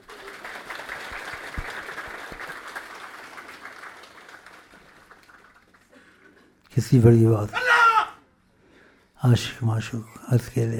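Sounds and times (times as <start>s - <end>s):
light applause from an audience at an Urdu religious talk: 0.0s - 6.7s
speech: 6.8s - 7.6s, 9.2s - 10.7s.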